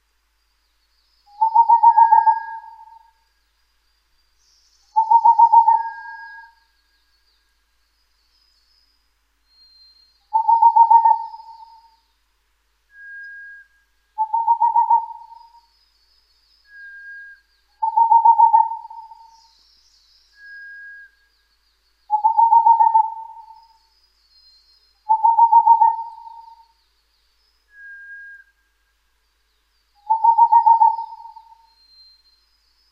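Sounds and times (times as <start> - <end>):
Boreal Owl singing trills of hoots: 1.3 - 3.2, 5.0 - 6.6, 10.3 - 12.0, 14.2 - 15.7, 17.8 - 19.4, 22.1 - 23.9, 25.0 - 26.8, 30.0 - 31.9.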